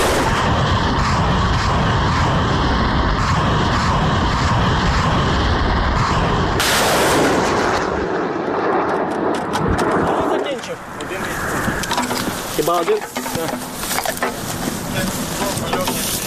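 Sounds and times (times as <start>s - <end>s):
artillery vehicle firing shells: 0.0s - 10.3s
voices: 10.0s - 16.2s.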